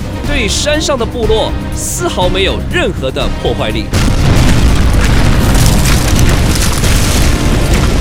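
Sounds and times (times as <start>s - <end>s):
speech: 0.3s - 4.4s
cannons bombarding a mountainside with exploding shells: 3.9s - 7.9s.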